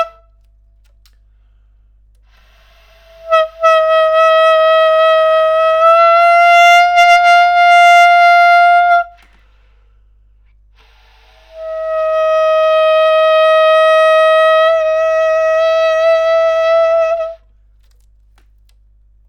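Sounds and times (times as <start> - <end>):
bass clarinet: 0.0 - 0.5, 2.3 - 9.4, 10.9 - 17.5.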